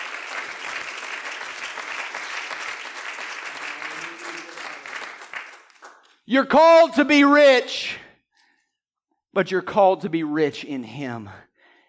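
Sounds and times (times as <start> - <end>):
crowd clapping: 0.0 - 6.2
speech: 6.3 - 8.0, 9.3 - 11.5.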